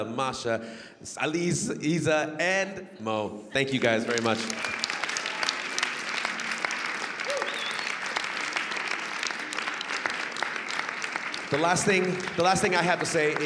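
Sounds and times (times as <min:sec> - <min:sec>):
speech: 0:00.0 - 0:04.8, 0:11.5 - 0:13.4
audience applauding panel of dancers: 0:03.8 - 0:13.4
faint whistle: 0:07.3 - 0:08.0.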